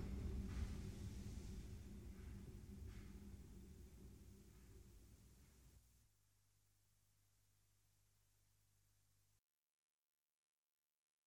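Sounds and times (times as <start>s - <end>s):
train passing: 0.0s - 5.1s.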